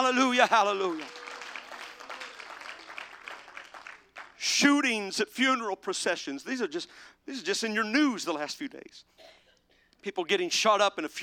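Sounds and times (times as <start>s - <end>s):
speech: 0.0s - 1.2s, 4.4s - 9.4s, 10.0s - 11.2s
church congregation clapping at a revival service: 0.0s - 4.5s.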